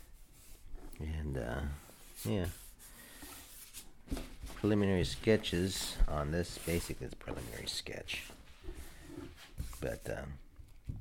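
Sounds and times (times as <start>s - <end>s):
speech: 1.0s - 2.6s, 4.1s - 8.8s, 9.8s - 10.4s
hand sanding of a panel for an artwork: 1.9s - 3.8s, 5.1s - 10.1s.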